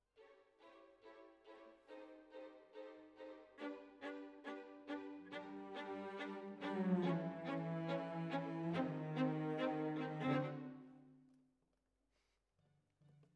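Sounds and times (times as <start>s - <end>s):
violas: 0.6s - 11.0s.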